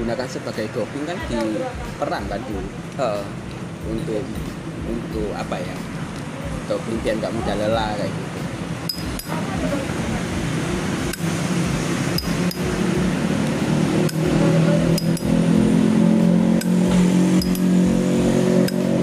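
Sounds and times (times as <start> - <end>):
speech: 0.1 - 8.3
ticks and clicks: 8.9 - 9.4, 11.0 - 11.3, 12.2 - 12.7, 13.4 - 15.4, 16.6 - 16.8, 17.4 - 17.7
motorcycle engine droning: 8.9 - 19.0.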